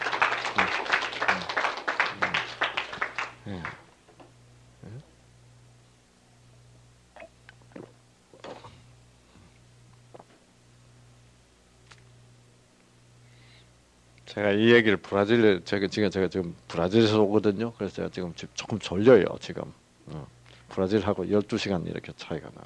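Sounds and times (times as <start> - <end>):
audience clapping: 0.0 - 3.9
speech: 3.5 - 3.8, 14.4 - 22.6.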